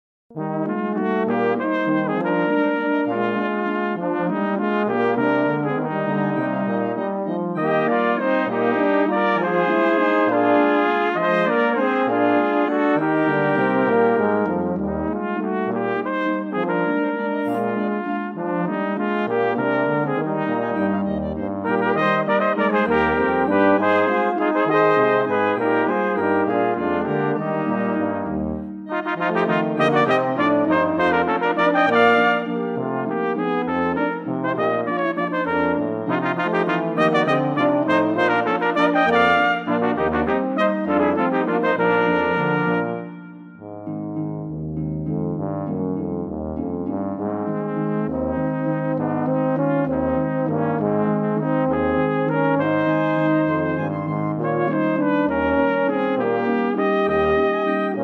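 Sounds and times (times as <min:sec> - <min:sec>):
waltz music: 0:00.5 - 0:58.0.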